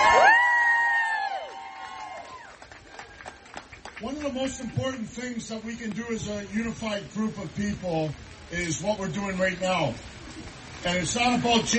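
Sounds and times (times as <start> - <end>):
crowd applause: 0.0 - 6.0
speech: 4.1 - 11.7.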